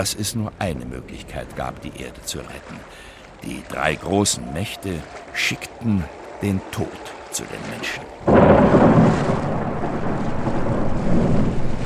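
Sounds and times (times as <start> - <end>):
speech: 0.0 - 9.2
wind in a thunderstorm: 0.0 - 11.8
rain in a thunderstorm: 0.8 - 11.8
deep continuous rolling thunder in a thunderstorm: 8.2 - 11.8.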